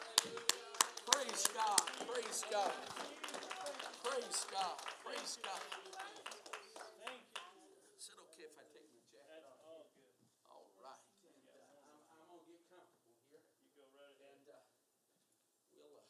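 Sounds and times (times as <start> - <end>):
crowd clapping hands: 0.0 - 7.6.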